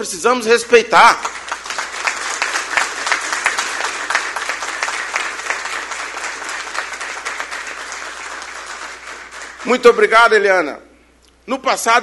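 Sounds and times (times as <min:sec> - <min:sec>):
speech: 0:00.0 - 0:01.5, 0:09.7 - 0:10.9, 0:11.5 - 0:12.0
audience applause: 0:01.1 - 0:10.0.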